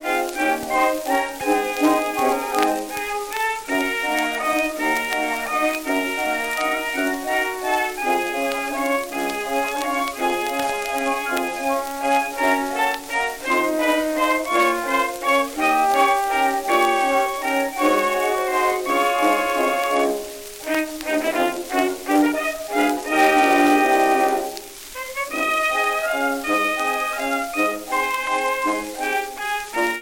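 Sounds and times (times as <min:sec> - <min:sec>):
waltz medley: 0:00.0 - 0:30.0.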